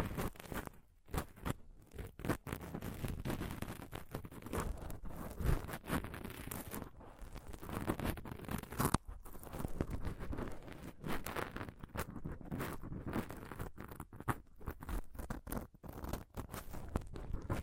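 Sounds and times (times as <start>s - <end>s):
scratching and touching on a microphone: 0.0s - 17.6s.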